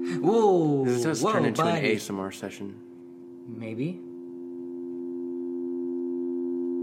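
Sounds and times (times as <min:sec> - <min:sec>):
speech: 0:00.2 - 0:02.9, 0:03.5 - 0:04.1
dial tone: 0:04.3 - 0:06.8.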